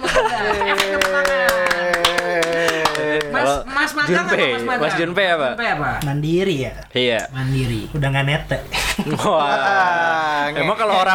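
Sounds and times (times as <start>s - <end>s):
laughter: 0.0s - 3.6s, 8.7s - 11.1s
audience clapping: 0.5s - 3.6s
speech: 4.0s - 11.1s.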